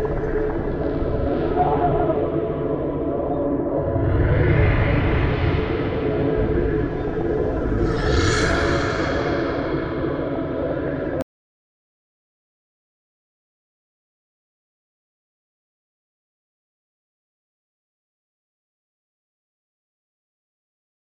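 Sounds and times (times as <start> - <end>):
medium exterior background wind: 0.0 - 11.2.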